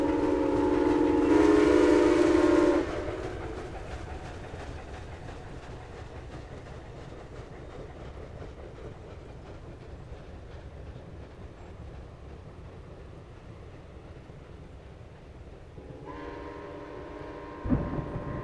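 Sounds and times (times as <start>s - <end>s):
steam locomotive passing in a thunderstorm: 0.0s - 18.4s
thunderstorm: 17.6s - 18.4s.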